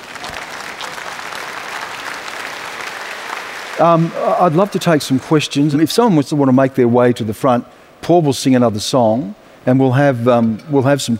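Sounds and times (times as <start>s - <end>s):
audience applause: 0.0s - 5.8s
speech: 3.8s - 11.1s.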